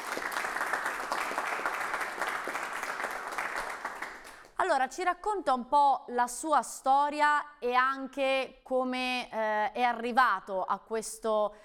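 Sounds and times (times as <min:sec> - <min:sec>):
applause: 0:00.0 - 0:04.6
speech: 0:04.7 - 0:11.6.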